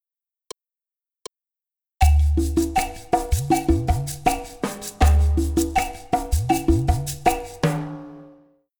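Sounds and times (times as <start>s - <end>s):
bow beat: 2.0s - 8.4s.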